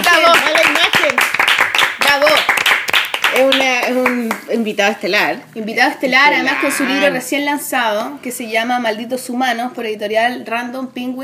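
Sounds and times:
hands clapping applause: 0.0 - 4.4
speech: 4.6 - 11.2.

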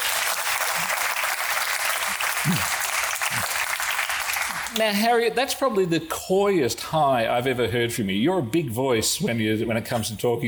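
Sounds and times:
audience applause: 0.0 - 4.8
speech: 4.8 - 10.4.

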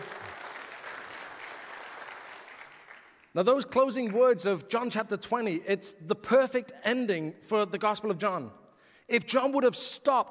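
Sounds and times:
room full of people applauding: 0.0 - 4.2
speech: 3.4 - 10.3.

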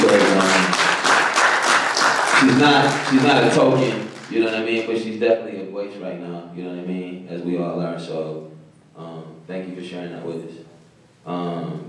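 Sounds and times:
crowd applauding: 0.0 - 5.0
speech: 2.5 - 10.6, 11.2 - 11.8.

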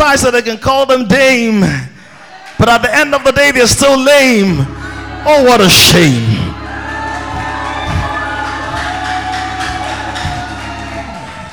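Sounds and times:
speech: 0.1 - 1.9, 2.6 - 6.3
audience cheering: 2.2 - 11.5
audience clapping: 2.3 - 3.4, 6.5 - 11.5
low steady hum: 3.8 - 11.5.

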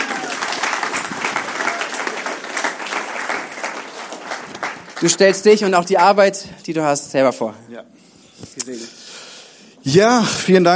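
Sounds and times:
audience applause: 0.0 - 5.6
speech: 5.0 - 7.9, 8.5 - 9.0, 9.8 - 10.7.

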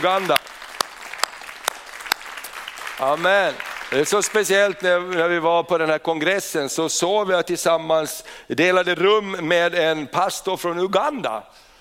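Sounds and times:
speech: 0.0 - 0.7, 3.0 - 11.6
audience applause: 0.0 - 4.7.

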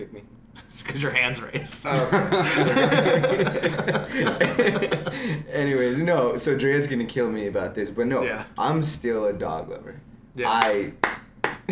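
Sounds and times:
speech: 0.0 - 11.7
laughter: 1.5 - 6.0
hands clapping: 10.5 - 11.7.

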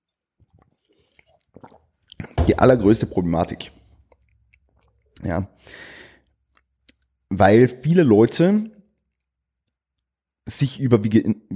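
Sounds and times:
quick sip of a Synergy drink: 0.3 - 7.1
speech: 2.6 - 3.8, 5.2 - 5.9, 7.4 - 8.8, 10.5 - 11.5.

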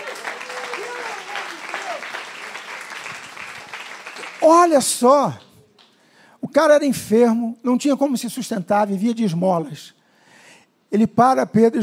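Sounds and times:
audience applauding: 0.0 - 6.0
speech: 4.4 - 5.4, 6.6 - 10.0, 10.9 - 11.8.

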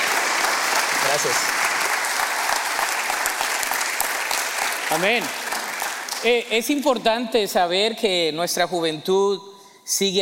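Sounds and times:
loud applause from audience: 0.0 - 6.5
speech: 1.2 - 1.6, 4.9 - 5.4, 6.2 - 10.2.

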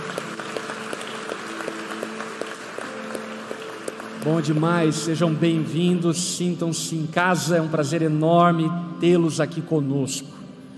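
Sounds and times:
church audience applause: 0.0 - 5.0
soft musical tones: 0.0 - 10.7
speech: 4.2 - 10.4.

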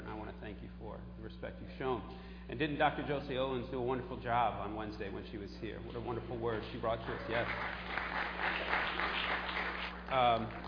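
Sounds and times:
speech: 0.5 - 10.6
audience clapping: 6.5 - 10.6.

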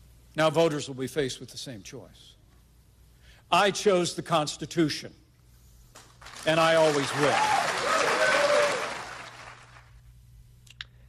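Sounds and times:
speech: 0.4 - 2.4, 3.5 - 5.2, 6.4 - 7.8
polite audience applause: 6.2 - 9.9.

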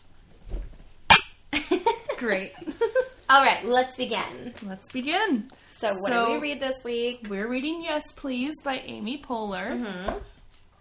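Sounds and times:
glasses clinking in a toast: 1.1 - 1.4
speech: 2.2 - 10.4.

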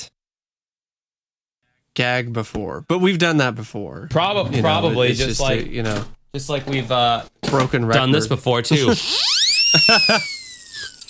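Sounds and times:
speech: 2.0 - 11.0
skeptic whistle sound effect: 9.0 - 11.0
laughter: 9.7 - 10.4.

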